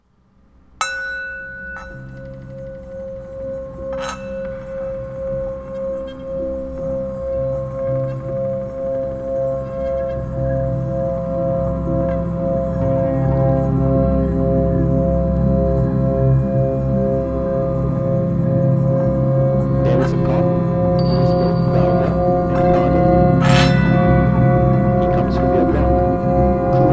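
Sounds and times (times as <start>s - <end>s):
singing bowl: 0.8s - 26.9s.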